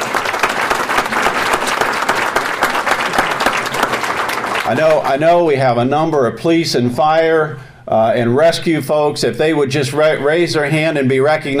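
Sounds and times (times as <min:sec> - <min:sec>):
audience applause: 0:00.0 - 0:05.1
speech: 0:04.7 - 0:11.5.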